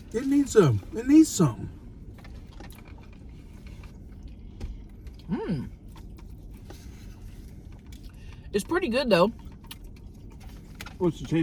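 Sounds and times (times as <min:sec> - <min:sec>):
speech: 0:00.1 - 0:01.8, 0:08.6 - 0:09.4, 0:11.0 - 0:11.4
person chewing potato salad at a mukbang meal: 0:01.9 - 0:08.5, 0:09.3 - 0:11.2.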